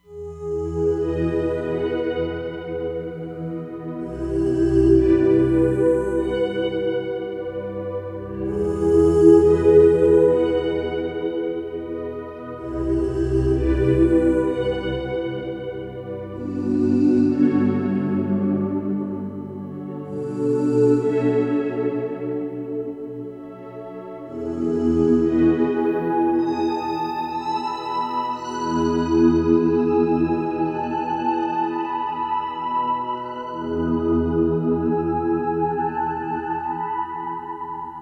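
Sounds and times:
Roland Fantom XR synthesizer: 0.0 - 37.9.

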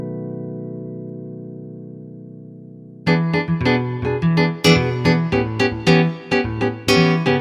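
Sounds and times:
Roland V-Synth nylon patch: 3.1 - 7.3.

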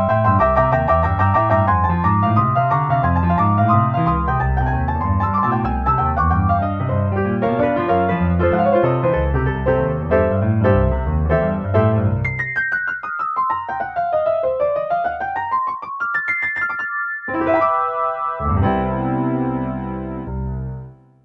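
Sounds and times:
Casio CSM-1 piano tone: 0.0 - 21.1.

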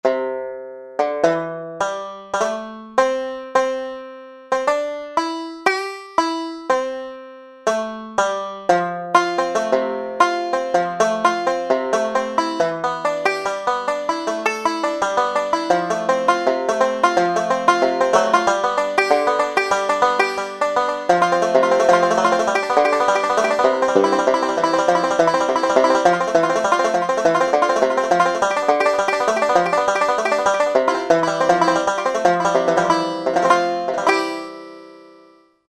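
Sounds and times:
banjo: 0.0 - 35.4.

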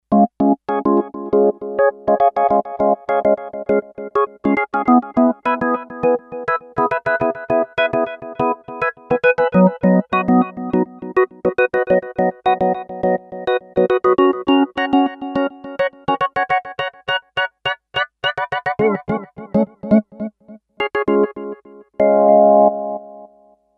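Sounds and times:
Kawai K5000S synthesizer: 0.1 - 23.6.

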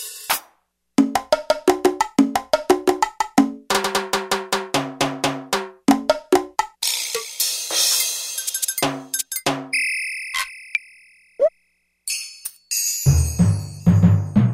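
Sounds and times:
drums: 0.0 - 9.8, 13.0 - 14.5.

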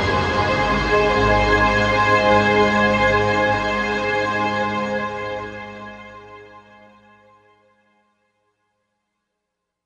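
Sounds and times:
synthesized orchestra hit: 0.0 - 4.4.

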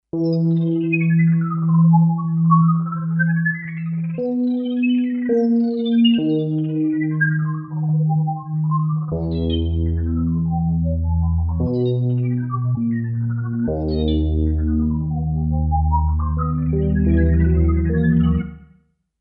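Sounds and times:
Kawai K5000S synthesizer: 0.0 - 18.8.

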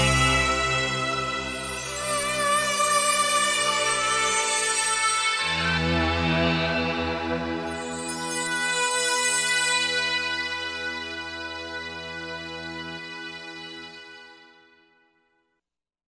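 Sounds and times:
brass bells on a Korg MSC-11S synthesizer: 0.0 - 12.8.

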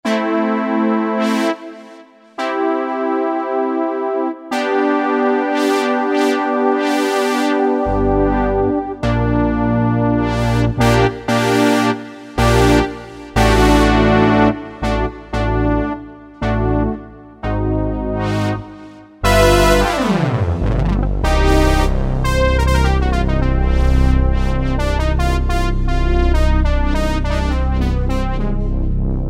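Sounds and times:
brass instruments: 0.1 - 29.2.

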